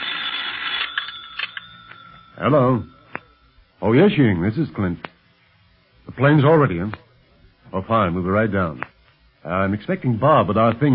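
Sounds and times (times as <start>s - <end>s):
telephone bell ringing: 0.0s - 3.6s
speech: 2.4s - 3.0s, 3.8s - 5.1s, 6.1s - 7.0s, 7.7s - 10.9s.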